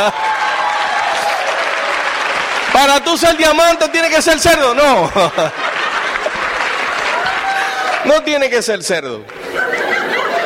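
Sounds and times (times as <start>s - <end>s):
speech: 0.0s - 0.3s, 2.7s - 5.6s, 8.0s - 9.7s
audience applause: 0.0s - 8.3s, 9.2s - 10.4s
laughter: 4.8s - 7.9s, 9.3s - 10.4s.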